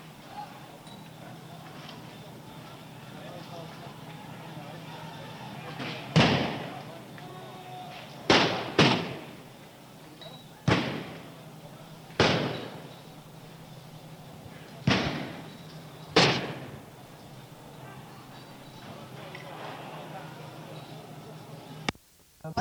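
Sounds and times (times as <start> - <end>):
gunshots: 5.7 - 7.0, 8.2 - 9.5, 10.6 - 11.4, 12.1 - 13.0, 14.7 - 17.0.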